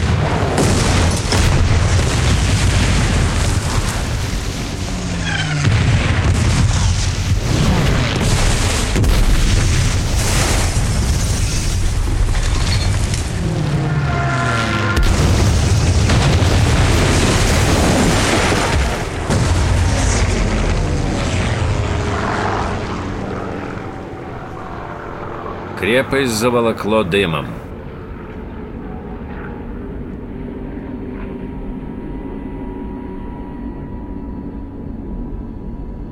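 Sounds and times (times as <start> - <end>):
droning roar of aircraft engines: 0.0 - 10.0, 10.8 - 36.1
booming explosions of a bombing raid: 0.0 - 24.0
speech: 26.1 - 27.6.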